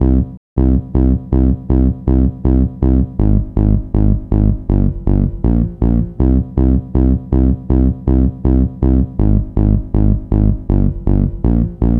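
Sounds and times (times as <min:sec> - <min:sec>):
hardcore loops at 160 BPM: 0:00.0 - 0:11.9.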